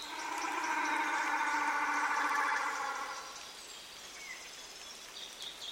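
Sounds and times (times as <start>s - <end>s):
reconstructed moa call: 0.0s - 3.4s.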